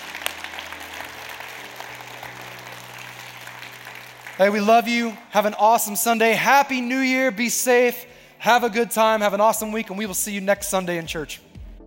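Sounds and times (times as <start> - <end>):
church congregation applauding to welcome new members: 0.0 - 6.4
speech: 4.4 - 11.5.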